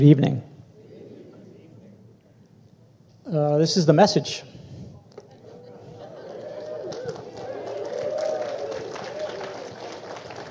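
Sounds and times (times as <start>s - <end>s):
speech: 0.0s - 0.5s, 3.3s - 4.6s
crowd murmur: 0.7s - 2.5s, 4.9s - 10.4s
large audience clapping: 6.0s - 10.4s.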